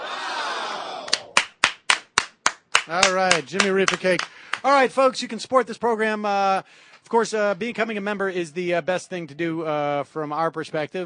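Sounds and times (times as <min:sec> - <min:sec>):
people clapping in an office: 0:00.9 - 0:04.9
speech: 0:02.9 - 0:11.0.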